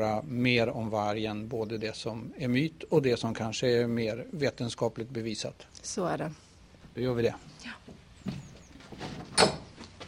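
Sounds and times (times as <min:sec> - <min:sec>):
speech: 0:00.0 - 0:06.4, 0:07.0 - 0:08.4
wooden gate being closed: 0:08.2 - 0:10.0.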